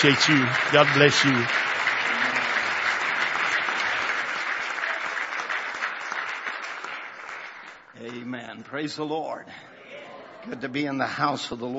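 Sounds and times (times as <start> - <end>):
speech: 0.0 - 1.7, 8.6 - 9.7, 10.4 - 11.7
audience applause: 0.0 - 8.2.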